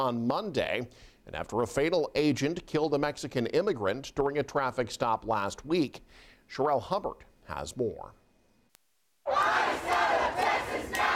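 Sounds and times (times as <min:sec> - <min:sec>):
speech: 0:00.0 - 0:08.2
protest crowd shouting: 0:09.3 - 0:11.1.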